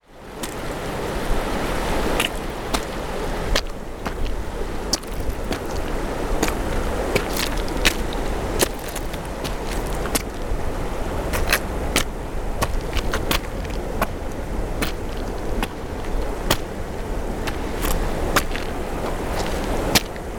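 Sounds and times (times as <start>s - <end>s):
footsteps walking along a riverside: 0.0s - 20.3s.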